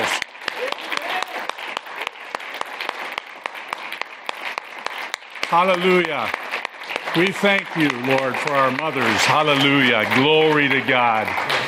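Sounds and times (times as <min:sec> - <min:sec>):
audience applauding: 0:00.0 - 0:11.6
speech: 0:05.5 - 0:06.4, 0:07.1 - 0:11.6.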